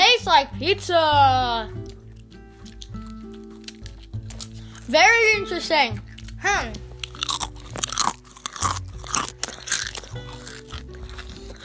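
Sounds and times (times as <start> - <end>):
speech: 0.4 - 2.0, 4.9 - 6.8
pizza-flavoured Pringles crisps crunching as they are bitten and chewed: 1.8 - 4.9, 6.0 - 11.6.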